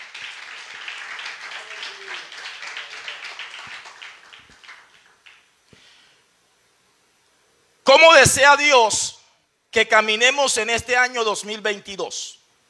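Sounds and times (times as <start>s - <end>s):
crowd applauding: 0.0s - 5.5s
speech: 7.9s - 12.4s.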